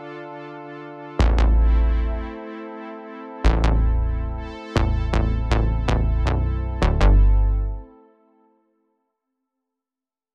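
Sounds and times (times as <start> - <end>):
bass with chorus effect: 1.2 - 2.4, 3.5 - 7.9.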